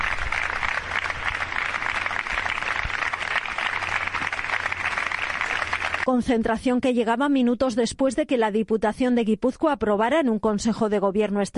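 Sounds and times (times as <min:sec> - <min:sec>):
large crowd applauding: 0:00.0 - 0:06.1
speech: 0:06.1 - 0:11.5.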